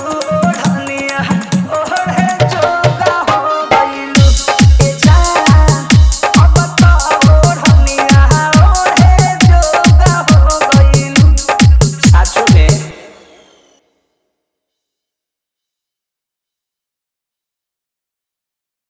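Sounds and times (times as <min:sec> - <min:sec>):
hard dholki drum mix: 0:00.0 - 0:13.4.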